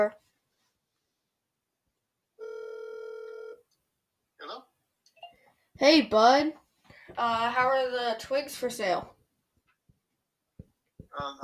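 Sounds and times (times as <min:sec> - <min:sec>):
speech: 0:00.0 - 0:00.2, 0:05.8 - 0:09.2, 0:11.2 - 0:11.4
telephone ringing on outgoing call: 0:02.4 - 0:03.6.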